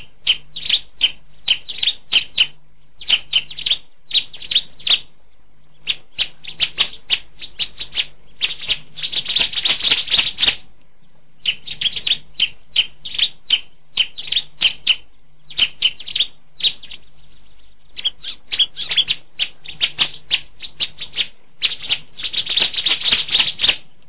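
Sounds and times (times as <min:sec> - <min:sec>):
Bar-winged Prinia giving sharp ticking notes: 0:00.0 - 0:05.1, 0:05.7 - 0:23.9.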